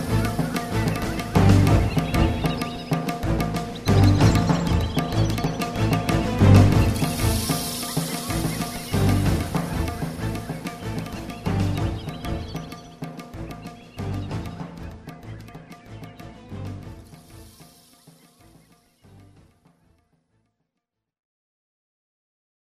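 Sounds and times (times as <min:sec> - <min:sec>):
battle music: 0:00.0 - 0:17.6.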